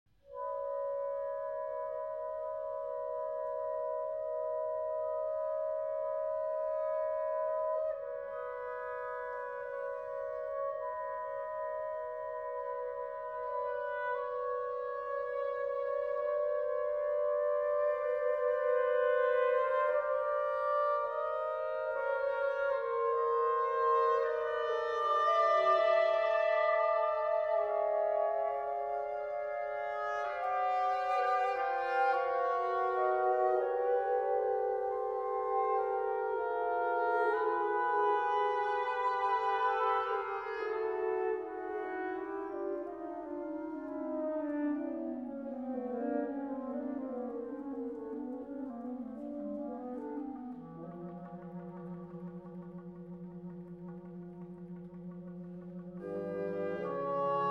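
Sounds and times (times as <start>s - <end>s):
woodwind quintet playing: 0.2s - 57.4s.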